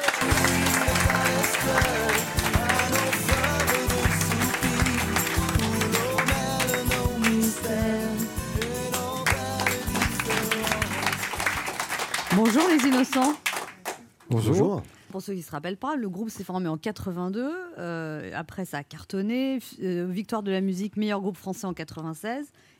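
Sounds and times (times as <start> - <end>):
audience applause: 0.0 - 7.8, 8.6 - 14.0
speech: 12.5 - 13.4, 14.3 - 22.7.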